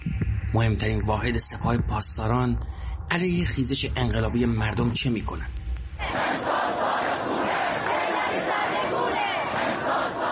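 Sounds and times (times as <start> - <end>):
speech: 0.6 - 5.6
large protest crowd chanting slogans: 6.0 - 10.3.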